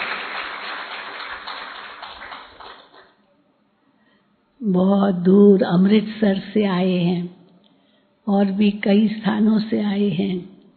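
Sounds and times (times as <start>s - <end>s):
audience clapping: 0.0s - 3.2s
speech: 4.6s - 7.4s, 8.3s - 10.5s.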